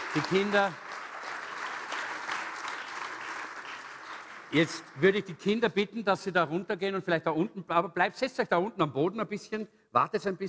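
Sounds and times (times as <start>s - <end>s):
audience applause: 0.0s - 5.2s
speech: 0.1s - 0.8s, 4.5s - 10.4s.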